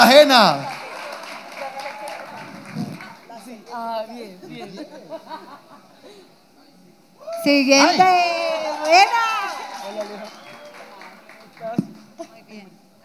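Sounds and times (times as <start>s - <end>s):
audience applause: 0.0s - 3.6s, 8.1s - 12.2s
speech: 0.2s - 0.8s, 3.7s - 6.3s, 7.2s - 10.4s
laughter: 4.2s - 6.3s.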